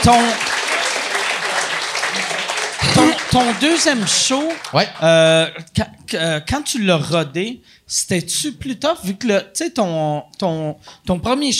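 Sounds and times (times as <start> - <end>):
speech: 0.0 - 0.5, 3.3 - 11.5
audience applause: 0.0 - 5.1.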